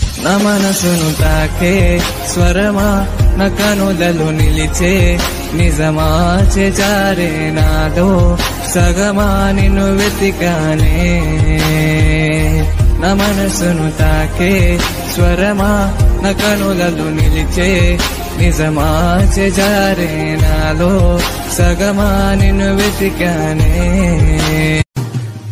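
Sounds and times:
Telugu romantic background music ringtone: 0:00.1 - 0:25.4.

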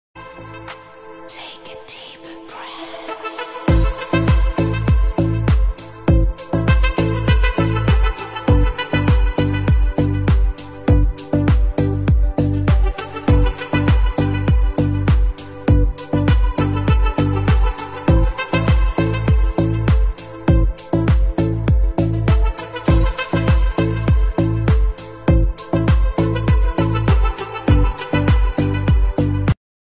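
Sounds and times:
Arabic ringtone background music: 0:03.2 - 0:29.5.

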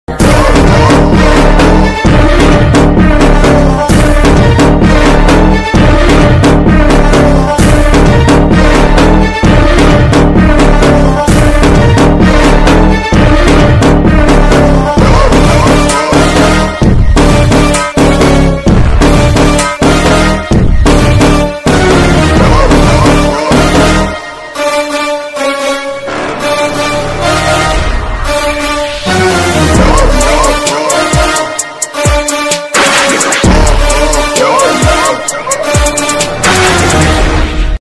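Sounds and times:
interval background music ringtone: 0:00.1 - 0:37.4.

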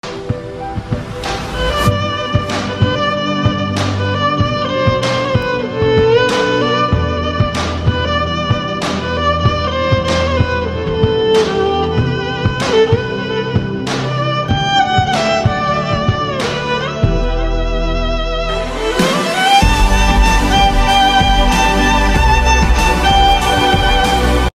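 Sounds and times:
violin playing a cover: 0:01.4 - 0:24.5.

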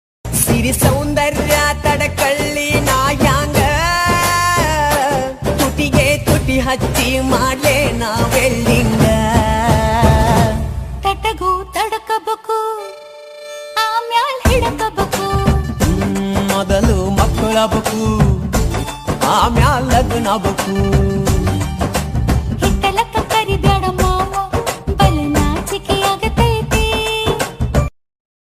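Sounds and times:
stylish background music: 0:00.3 - 0:12.1, 0:12.8 - 0:27.9.

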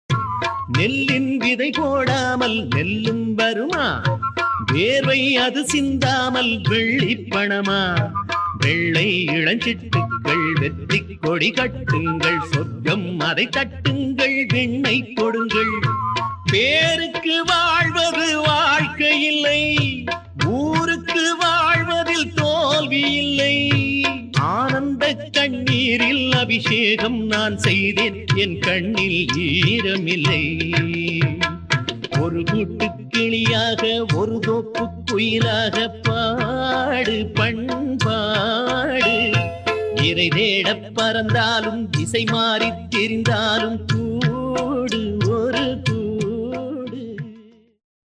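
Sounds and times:
ancient TV instrumental music: 0:00.0 - 0:47.1.

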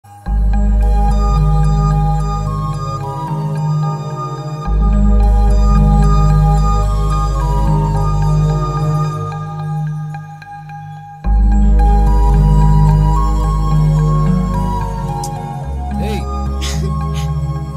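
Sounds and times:
romantic background music: 0:00.1 - 0:17.7.

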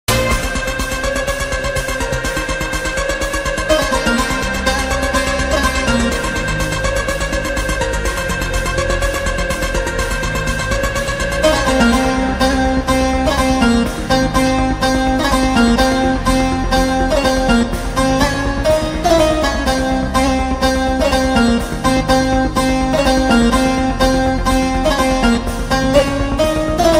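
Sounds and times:
background music ringtone: 0:00.1 - 0:26.9.

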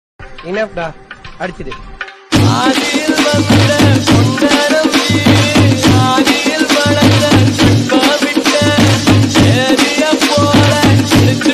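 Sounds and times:
Tamil DJ remix song: 0:01.9 - 0:11.5.

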